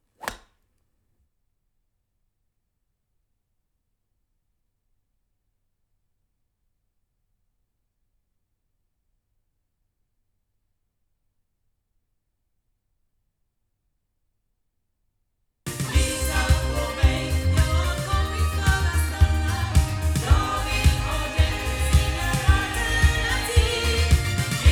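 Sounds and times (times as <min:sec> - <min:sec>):
loudspeakers: 0:15.7 - 0:24.7.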